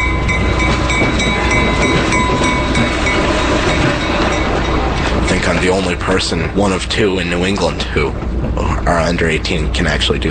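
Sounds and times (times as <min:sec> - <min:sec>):
train bell dinging: 0:00.0 - 0:05.7
train wheels clacking on rails: 0:00.0 - 0:10.2
speech: 0:05.6 - 0:10.2.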